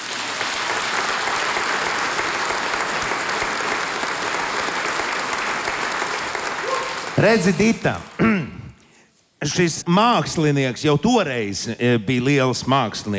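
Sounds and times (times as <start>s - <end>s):
audience applause: 0.0s - 8.2s
speech: 7.2s - 8.5s, 9.4s - 13.1s.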